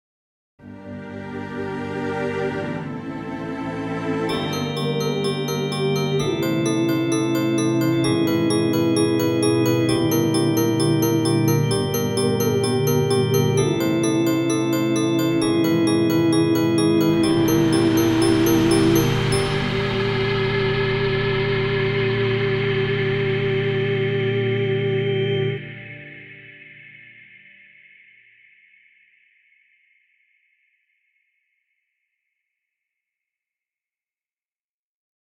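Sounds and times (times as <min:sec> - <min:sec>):
very short Halloween music: 0:00.6 - 0:31.5.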